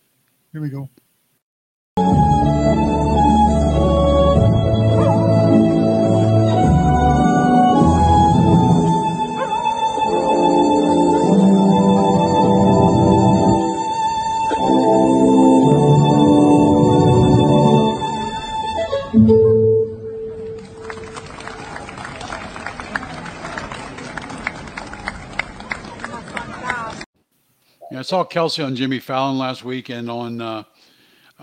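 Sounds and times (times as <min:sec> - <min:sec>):
speech: 0:00.5 - 0:01.0, 0:28.1 - 0:30.9
violin melody: 0:02.0 - 0:21.0
dog howling and crooning along with a violin: 0:04.9 - 0:05.6, 0:09.2 - 0:12.1.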